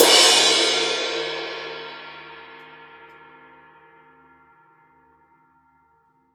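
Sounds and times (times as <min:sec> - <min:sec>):
raw acoustic drum kit: 0:00.0 - 0:02.6.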